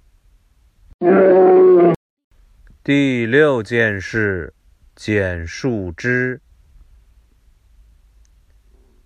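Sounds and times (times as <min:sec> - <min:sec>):
bear roaring: 0:01.0 - 0:02.0
speech: 0:02.9 - 0:06.4.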